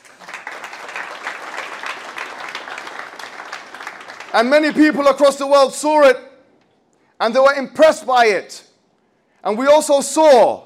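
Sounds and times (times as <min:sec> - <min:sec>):
crowd applause: 0:00.0 - 0:04.9
speech: 0:04.4 - 0:06.3, 0:07.2 - 0:08.7, 0:09.4 - 0:10.6.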